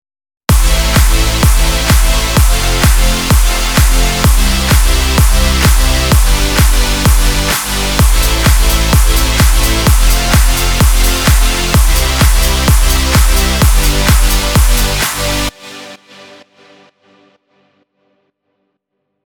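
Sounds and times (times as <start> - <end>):
beats: 0.5 - 15.5.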